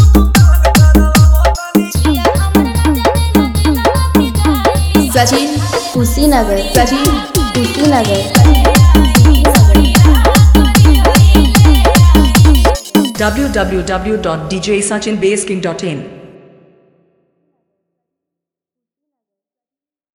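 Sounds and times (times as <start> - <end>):
hard dholki vibration: 0.0 - 14.0
Bhojpuri DJ remix song: 0.0 - 16.2.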